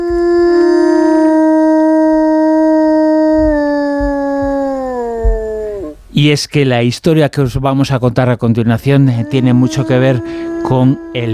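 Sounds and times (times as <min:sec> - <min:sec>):
wolf howling: 0:00.0 - 0:06.0, 0:09.2 - 0:11.3
speech: 0:06.2 - 0:11.3.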